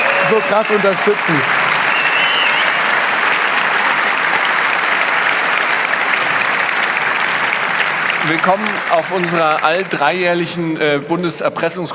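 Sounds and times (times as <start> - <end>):
audience applause: 0.0 - 11.4
speech: 0.3 - 1.6, 8.3 - 11.9.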